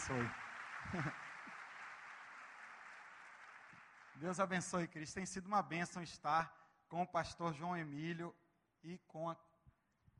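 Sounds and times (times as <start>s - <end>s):
applause: 0.0s - 5.4s
speech: 0.1s - 1.3s, 4.2s - 9.5s.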